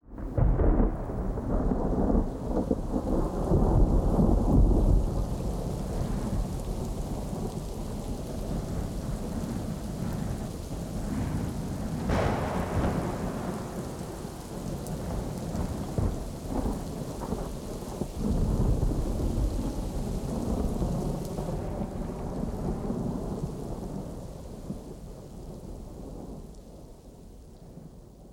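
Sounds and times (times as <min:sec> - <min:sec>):
thunder: 0:00.0 - 0:26.5
rain: 0:00.0 - 0:28.3.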